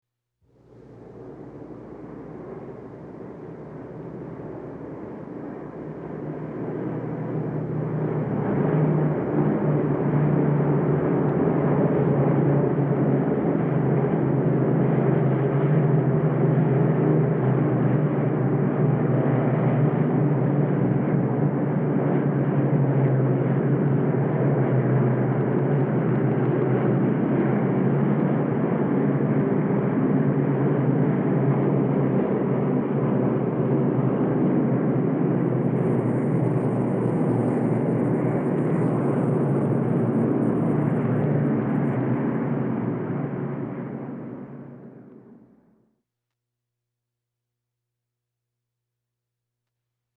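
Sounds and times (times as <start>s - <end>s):
bomber planes flying: 0.7s - 45.6s.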